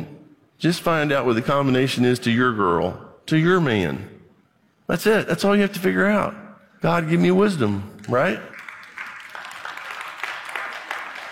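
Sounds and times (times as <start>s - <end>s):
speech: 0.0s - 4.1s, 4.9s - 8.5s
weak audience clapping: 8.0s - 11.3s.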